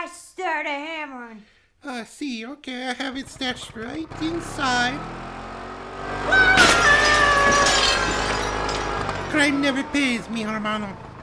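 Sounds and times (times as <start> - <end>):
speech: 0.6 - 5.3, 9.3 - 11.0
window glass shattering: 6.3 - 9.8
glass shards tinkling: 6.6 - 9.5.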